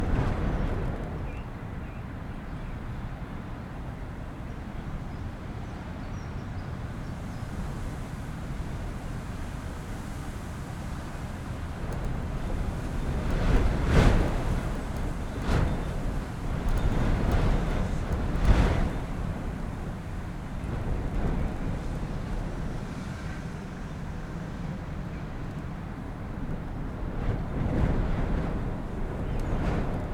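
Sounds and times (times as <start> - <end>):
blustery wind in an attic interior: 0.0 - 30.1
sporadic raindrops: 11.0 - 22.5.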